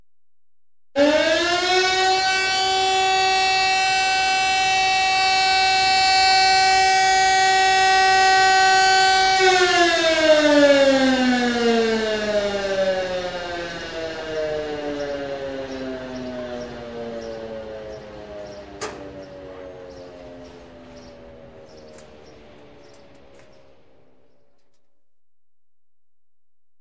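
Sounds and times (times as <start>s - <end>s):
siren: 1.0s - 24.9s.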